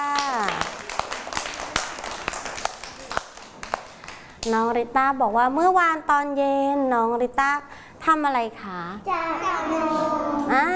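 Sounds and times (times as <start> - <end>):
children clapping hands: 0.0 - 4.5
speech: 4.4 - 10.7.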